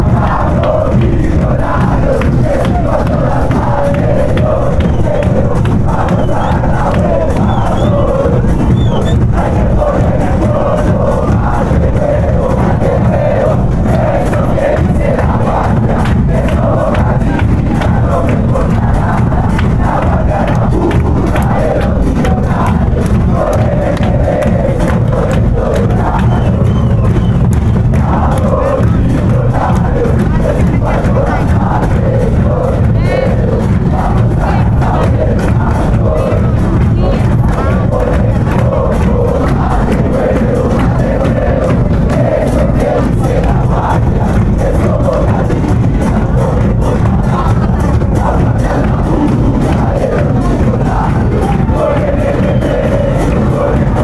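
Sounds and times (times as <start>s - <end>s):
football fans chanting: 0.0s - 54.0s.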